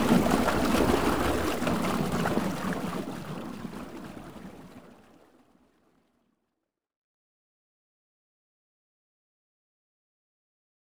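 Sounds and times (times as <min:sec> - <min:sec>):
stream flowing: 0:00.0 - 0:04.0.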